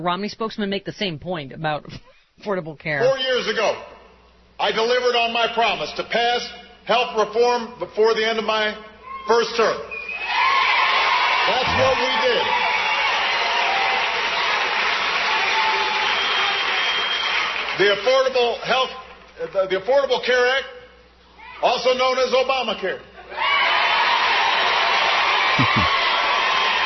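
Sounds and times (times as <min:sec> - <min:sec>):
speech: 0:00.0 - 0:03.9, 0:04.6 - 0:10.0, 0:11.5 - 0:12.6, 0:17.8 - 0:20.8, 0:21.6 - 0:23.5
crowd cheering and applauding: 0:10.2 - 0:18.0, 0:23.3 - 0:26.8.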